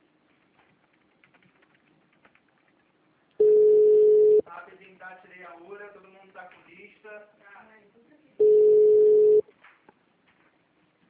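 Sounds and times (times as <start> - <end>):
telephone ring tone before forwarding to voicemail: 3.4 - 4.4, 8.4 - 9.4.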